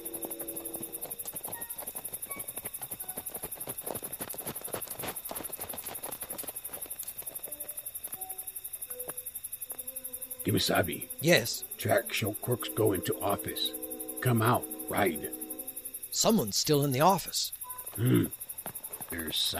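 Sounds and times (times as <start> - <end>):
horse hooves clip-clopping: 0.0 - 9.9, 17.9 - 19.3
speech: 10.5 - 15.4, 16.1 - 18.4, 19.2 - 19.5.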